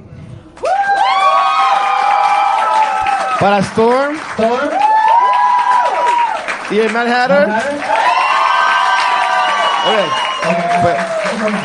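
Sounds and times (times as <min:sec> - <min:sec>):
audience applause and cheering: 0:00.5 - 0:11.6
high whoops and shouts: 0:00.6 - 0:03.4, 0:04.7 - 0:06.4, 0:07.5 - 0:11.6
speech: 0:03.4 - 0:04.8, 0:06.7 - 0:08.0, 0:09.8 - 0:11.6.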